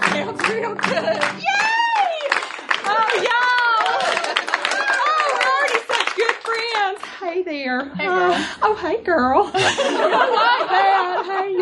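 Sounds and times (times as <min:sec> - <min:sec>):
live audience clapping: 0:00.0 - 0:07.2
speech: 0:00.2 - 0:01.6, 0:07.6 - 0:11.6
laughter: 0:00.6 - 0:01.6, 0:02.2 - 0:06.7, 0:09.4 - 0:11.6.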